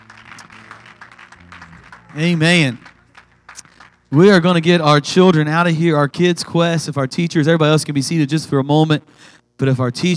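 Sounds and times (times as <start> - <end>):
audience hand clapping: 0.0 - 4.9
speech: 2.1 - 2.9, 4.1 - 10.1.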